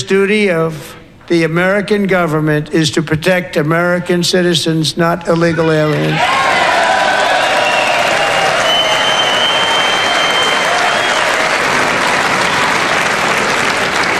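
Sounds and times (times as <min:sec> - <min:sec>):
speech: 0:00.0 - 0:06.6
audience applause: 0:05.4 - 0:14.1
faint whistles or cheers: 0:05.8 - 0:14.1.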